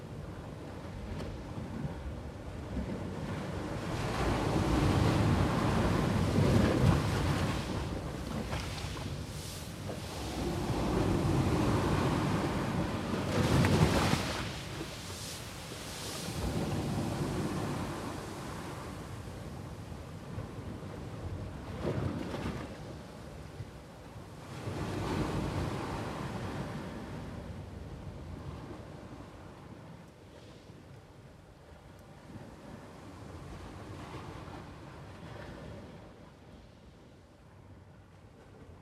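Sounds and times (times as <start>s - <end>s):
coastal breeze at Gjipe: 0.0s - 38.8s
waves rolling in on Gjipe's shore in Albania: 0.0s - 38.8s.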